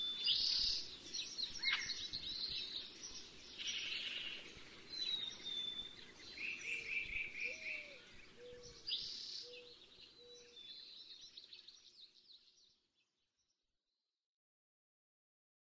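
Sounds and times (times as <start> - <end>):
chorus of North American birds singing: 0.0 - 13.6.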